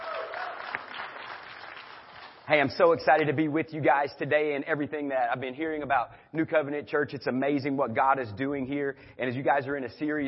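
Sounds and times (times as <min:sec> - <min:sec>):
brief voices and cheers: 0:00.0 - 0:01.0
audience clapping hands in praise: 0:00.0 - 0:02.7
speech: 0:02.5 - 0:10.2.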